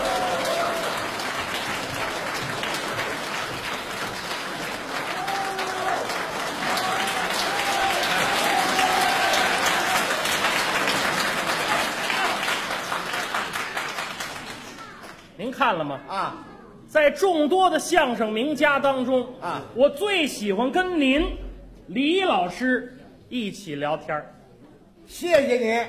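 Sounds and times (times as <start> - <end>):
audience applause welcoming crosstalk comedy performers onto the stage: 0.0 - 15.3
speech: 15.6 - 24.4, 25.1 - 25.8.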